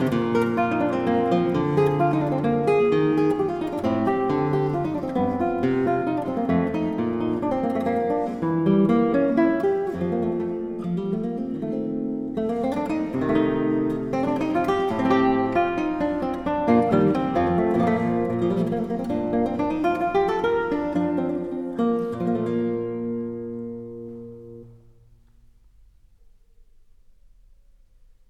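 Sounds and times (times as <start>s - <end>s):
classical guitar piece: 0.0s - 28.2s.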